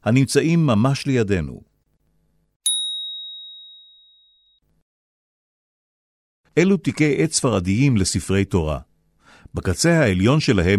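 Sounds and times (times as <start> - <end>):
speech: 0.0 - 1.7, 6.6 - 8.9, 9.5 - 10.7
single bright bell chime: 2.7 - 4.6.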